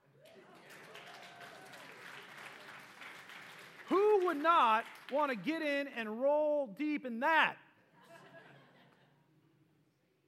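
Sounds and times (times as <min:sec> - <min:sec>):
room full of people applauding: 0:00.2 - 0:05.6
speech: 0:04.3 - 0:07.6
laughter: 0:07.9 - 0:09.3.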